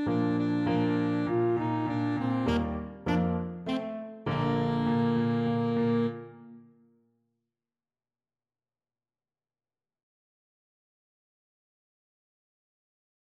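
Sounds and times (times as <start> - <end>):
saxophone fanfare: 0.0 - 6.6.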